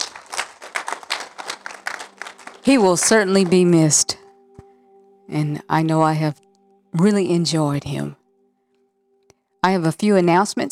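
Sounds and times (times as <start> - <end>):
church congregation clapping: 0.0 - 4.0
speech: 2.6 - 4.2, 5.3 - 8.2, 9.6 - 10.7.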